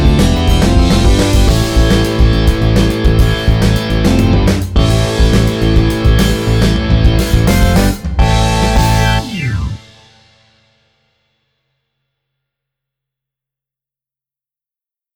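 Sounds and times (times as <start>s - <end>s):
rock music: 0.0s - 10.7s.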